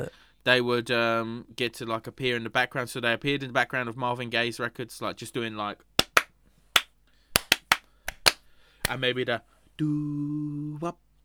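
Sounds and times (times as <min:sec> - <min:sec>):
speech: 0:00.0 - 0:05.9, 0:08.9 - 0:11.0
sharp hand claps: 0:06.0 - 0:09.0.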